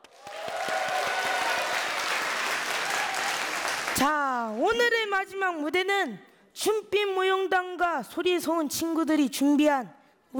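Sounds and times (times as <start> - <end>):
audience applause: 0.0 - 4.1
speech: 4.0 - 10.3.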